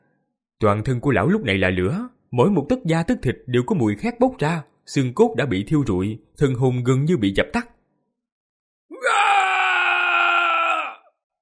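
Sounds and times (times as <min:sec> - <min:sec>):
speech: 0:00.6 - 0:07.7
man's anguished howling scream: 0:08.9 - 0:11.2.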